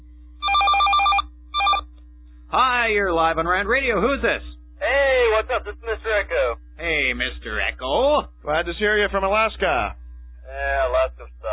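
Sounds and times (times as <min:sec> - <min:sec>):
steady low hum: 0:00.0 - 0:11.5
telephone ringing for an incoming call: 0:00.4 - 0:01.8
speech: 0:02.5 - 0:11.0.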